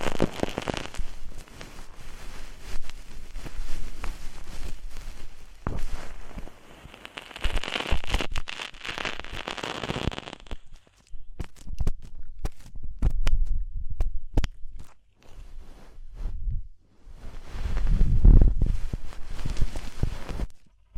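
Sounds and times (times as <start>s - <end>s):
sharp clicks and pops: 0.0s - 1.9s, 2.7s - 15.2s
deep ear cleaning crackling and scratchy rubbing: 0.0s - 13.5s, 17.1s - 20.9s
low rumbling: 16.0s - 20.4s.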